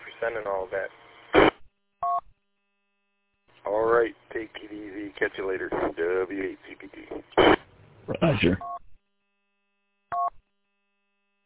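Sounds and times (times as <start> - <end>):
speech: 0.2 - 1.5, 3.7 - 8.8
phone keypad two-tone beep: 10.1 - 10.3.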